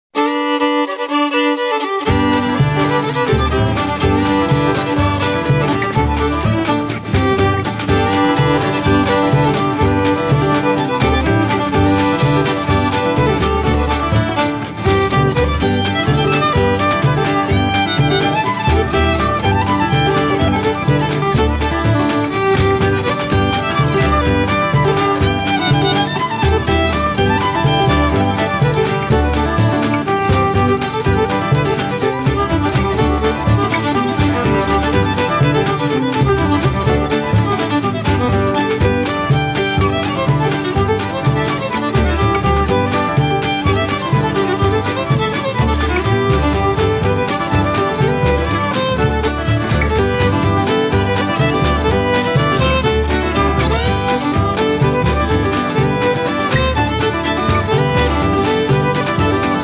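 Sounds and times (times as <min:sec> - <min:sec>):
polka music: 0:00.0 - 0:59.6.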